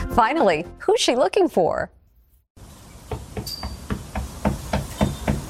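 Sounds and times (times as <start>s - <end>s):
speech: 0.2s - 2.0s
horse knocking on a door: 3.1s - 5.4s.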